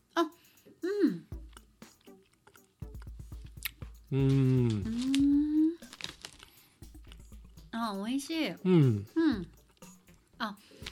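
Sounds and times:
person humming: 0.1 - 1.4, 4.1 - 5.9, 8.6 - 9.5
chewing a jelly gummy candy: 1.4 - 7.4
speech: 4.1 - 5.2, 7.9 - 9.5.

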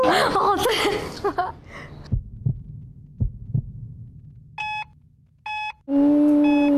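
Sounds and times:
speech: 0.1 - 2.0, 5.9 - 6.6
heartbeat: 2.0 - 4.9.

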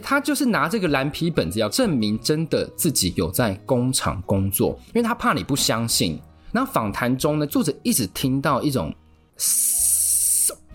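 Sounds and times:
speech: 0.1 - 9.9, 10.5 - 10.7
person imitating rasping wheezy breath: 9.4 - 10.7.

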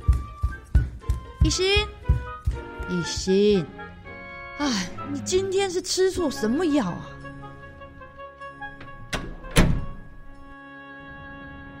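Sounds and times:
speech: 1.4 - 2.0, 2.9 - 3.8, 4.6 - 7.1
door slamming shut: 8.8 - 10.2.

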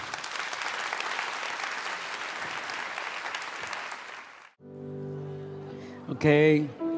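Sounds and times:
audience clapping: 0.0 - 4.6
speech: 6.1 - 6.8.

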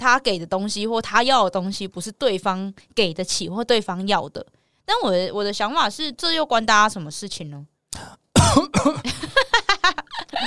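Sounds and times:
speech: 0.0 - 9.3
person coughing: 8.0 - 9.4.

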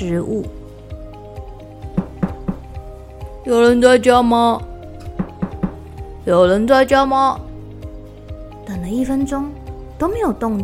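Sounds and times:
speech: 0.0 - 0.6, 3.4 - 4.7, 6.3 - 7.5, 8.7 - 10.6
music: 0.0 - 10.6
knocking on a wooden door: 1.9 - 2.8, 5.2 - 6.0
soft dull thumps: 1.9 - 2.8, 5.0 - 6.0.

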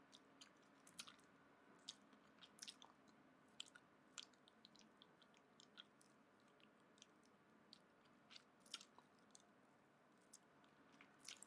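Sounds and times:
wet licking and sucking on a lollipop: 0.0 - 9.5, 10.2 - 11.4.

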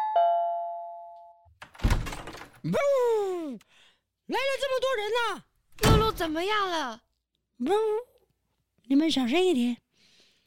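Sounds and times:
electric doorbell chime: 0.0 - 1.5
speech: 2.6 - 7.0, 7.6 - 8.1, 8.9 - 9.8.

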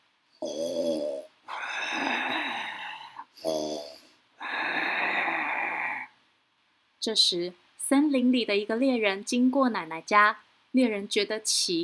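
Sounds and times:
loud snoring: 0.4 - 6.1
speech: 7.0 - 11.8.

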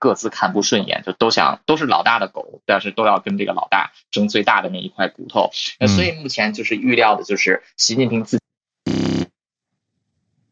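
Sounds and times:
speech: 0.0 - 8.4
phone buzzing with an incoming call: 8.9 - 9.3.

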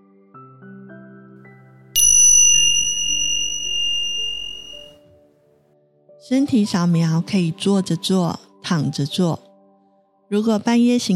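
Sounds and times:
meditation bell chime: 2.0 - 5.0
speech: 6.2 - 9.4, 10.3 - 11.1.

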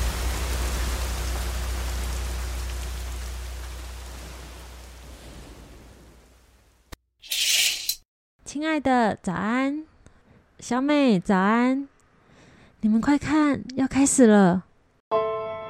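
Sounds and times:
rain falling: 0.0 - 6.9
speech: 8.5 - 9.9, 10.6 - 11.9, 12.8 - 14.7.

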